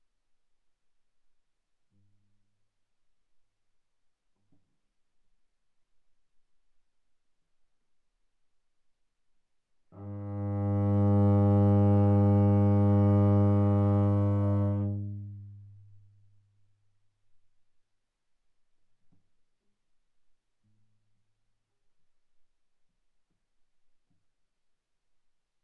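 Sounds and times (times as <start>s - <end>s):
viola bowed fortissimo on the G string: 10.0s - 15.4s.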